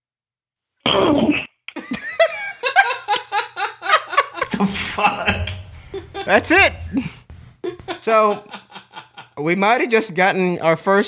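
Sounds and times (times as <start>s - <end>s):
laughter: 1.8s - 9.6s
speech: 4.6s - 5.4s, 6.2s - 7.1s, 8.0s - 8.5s, 9.4s - 11.0s
heavy breathing into a phone microphone on a voicemail: 5.6s - 7.6s.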